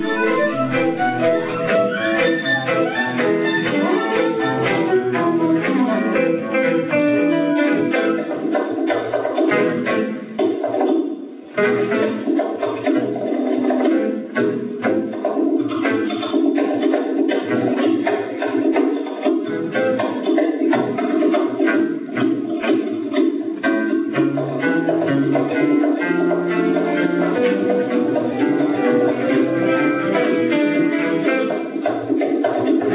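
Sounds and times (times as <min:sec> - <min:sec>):
drums: 0:00.0 - 0:32.9.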